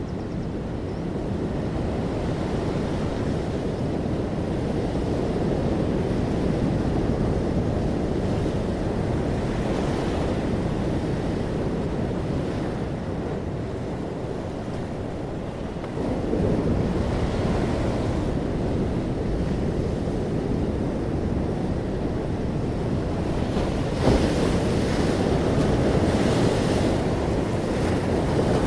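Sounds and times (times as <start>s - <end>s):
ocean waves: 0.0s - 28.6s.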